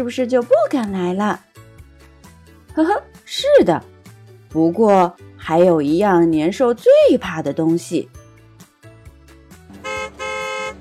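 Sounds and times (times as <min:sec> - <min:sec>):
speech: 0:00.0 - 0:01.5, 0:02.8 - 0:03.9, 0:04.5 - 0:08.2
car engine humming: 0:09.7 - 0:10.7.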